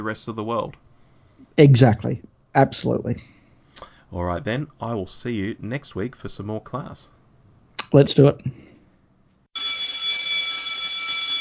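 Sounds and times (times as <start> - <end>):
speech: 0.0 - 0.9, 1.6 - 7.2, 7.9 - 8.7
bell ringing: 9.6 - 11.3.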